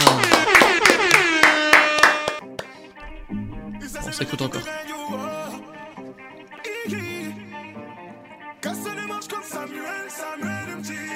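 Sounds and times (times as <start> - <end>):
audience clapping in unison to cheer on a team: 0.0 - 4.5
sustained bright musical tone: 3.0 - 5.3
speech: 4.2 - 5.5, 6.9 - 7.2.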